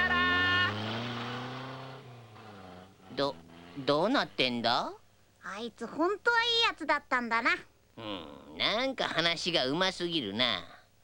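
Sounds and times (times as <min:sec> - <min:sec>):
car engine driving away: 0:00.0 - 0:04.6
speech: 0:03.2 - 0:10.7.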